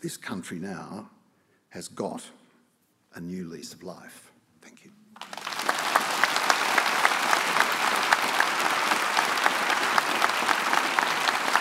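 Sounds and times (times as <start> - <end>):
speech: 0.0 - 2.4, 3.1 - 5.0
audience applause: 5.2 - 11.5.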